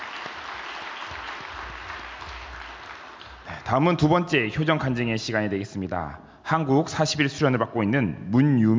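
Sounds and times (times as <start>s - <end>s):
audience applause: 0.0s - 3.6s
speech: 3.7s - 8.7s.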